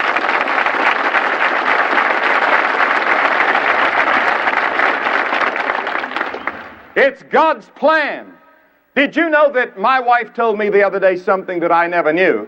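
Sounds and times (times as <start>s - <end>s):
audience applause: 0.0s - 7.0s
speech: 7.0s - 8.4s, 9.0s - 12.4s.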